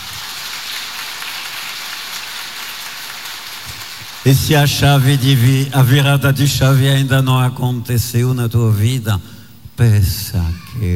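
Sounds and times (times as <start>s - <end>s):
audience clapping hands: 0.0s - 4.9s
speech: 4.2s - 10.9s.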